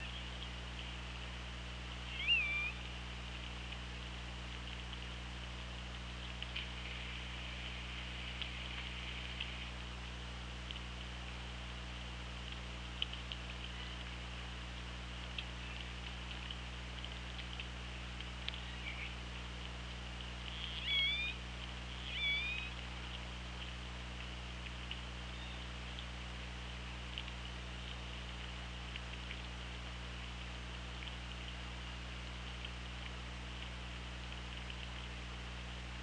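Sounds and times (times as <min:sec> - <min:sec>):
low hum: 0:00.0 - 0:36.0
killer whale calls: 0:20.6 - 0:21.4.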